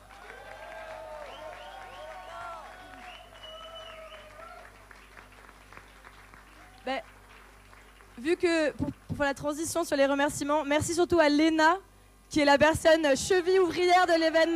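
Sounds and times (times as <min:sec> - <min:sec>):
audience cheering and whooping: 0:00.0 - 0:04.9
audience applauding: 0:00.0 - 0:08.3
speech: 0:06.9 - 0:07.2, 0:08.2 - 0:14.5.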